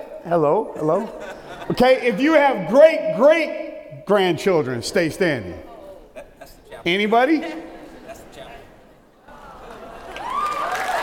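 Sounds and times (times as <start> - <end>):
speech: 0.2 - 5.7, 6.8 - 7.6
laughter: 0.6 - 2.7, 5.6 - 11.0
audience applause: 9.7 - 11.0.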